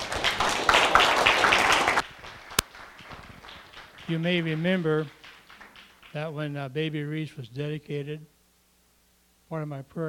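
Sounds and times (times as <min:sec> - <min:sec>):
audience clapping: 0:00.0 - 0:06.6
speech: 0:04.1 - 0:05.2, 0:06.1 - 0:08.3, 0:09.5 - 0:10.0.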